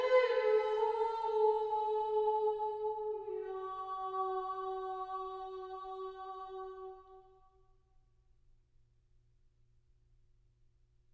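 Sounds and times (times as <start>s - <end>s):
chant: 0.0s - 7.8s.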